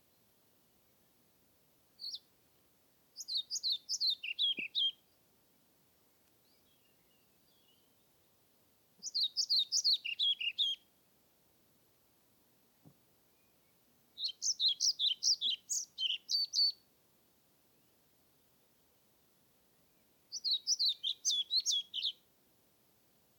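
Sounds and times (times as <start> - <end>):
European Pied Flycatcher singing: 2.0 - 2.3, 3.2 - 5.1, 6.4 - 8.1, 9.0 - 10.8, 13.3 - 16.8, 19.9 - 22.2.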